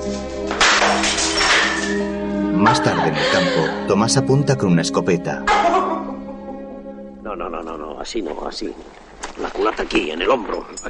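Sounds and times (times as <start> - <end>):
glass of liquor thrown against the floor and shattering: 0.5 - 2.1
speech: 2.6 - 5.8, 7.4 - 10.8.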